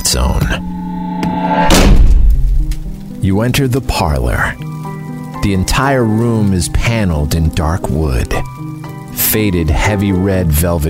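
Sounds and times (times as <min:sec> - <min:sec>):
musical drone: 0:00.0 - 0:03.3
speech: 0:00.2 - 0:00.8, 0:03.2 - 0:04.7, 0:05.4 - 0:08.6, 0:09.2 - 0:10.8
heavy door slamming shut: 0:01.3 - 0:03.0.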